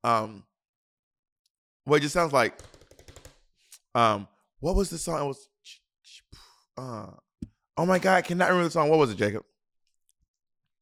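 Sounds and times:
speech: 0:00.0 - 0:00.5, 0:01.8 - 0:02.8, 0:04.0 - 0:09.5
typing on a keyboard: 0:02.6 - 0:03.4.

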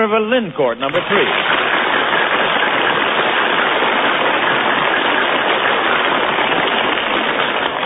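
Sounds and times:
speech: 0:00.0 - 0:01.6
audience applause: 0:00.9 - 0:07.8.

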